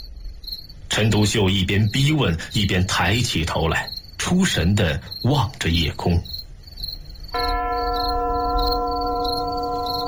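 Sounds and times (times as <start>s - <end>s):
speech: 1.0s - 6.4s, 7.4s - 8.8s
distant church bell tolling: 7.4s - 10.0s.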